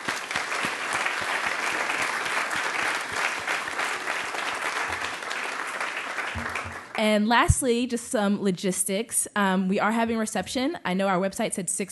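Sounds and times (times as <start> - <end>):
audience applause: 0.0 - 7.0
speech: 7.0 - 11.9.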